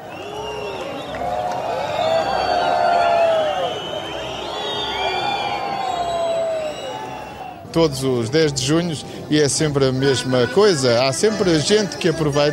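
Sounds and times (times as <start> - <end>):
shrill sliding whistles: 0.0 - 7.6
large crowd booing: 0.0 - 7.7
speech: 7.8 - 12.5.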